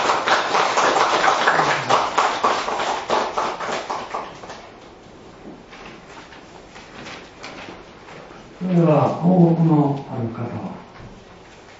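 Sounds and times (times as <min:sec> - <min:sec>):
audience applause of thanks: 0:00.0 - 0:04.5
speech: 0:08.8 - 0:10.7.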